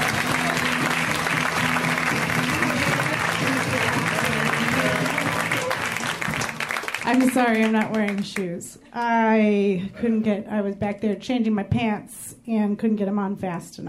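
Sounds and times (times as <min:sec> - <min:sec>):
audience applause and cheering for a comedian: 0:00.0 - 0:08.2
speech: 0:07.1 - 0:13.8.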